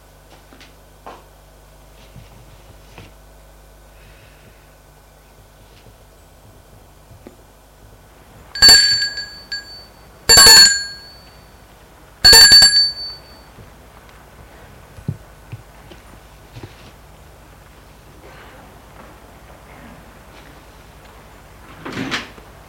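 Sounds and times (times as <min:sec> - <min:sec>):
doorbell ringing at a house door: 0:08.6 - 0:11.5, 0:12.2 - 0:13.5.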